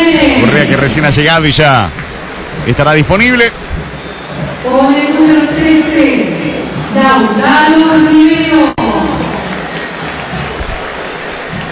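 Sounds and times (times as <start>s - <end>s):
stadium crowd murmur: 0.0s - 11.7s
speech: 0.1s - 2.0s, 2.6s - 3.6s, 4.6s - 6.4s, 7.0s - 8.8s
stadium crowd applauding a player: 0.4s - 3.5s, 7.8s - 11.7s.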